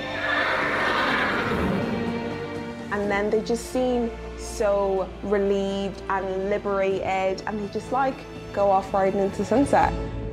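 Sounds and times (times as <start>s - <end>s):
horse rearing and neighing loudly: 0.0s - 2.4s
speech: 3.1s - 10.2s.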